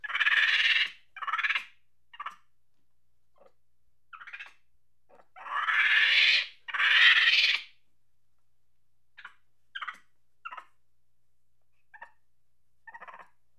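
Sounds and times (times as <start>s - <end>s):
monkey chattering angrily with screeches and squeaks: 0.0s - 2.3s, 5.4s - 7.6s.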